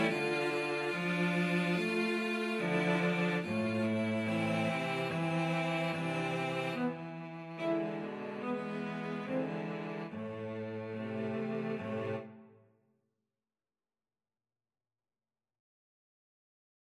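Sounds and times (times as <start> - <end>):
cello quartet: 0.0 - 12.4.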